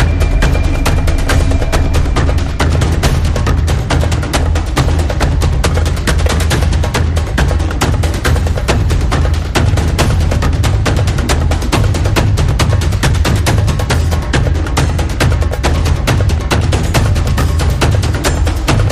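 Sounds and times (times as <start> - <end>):
fast action percussion: 0.0 - 18.8.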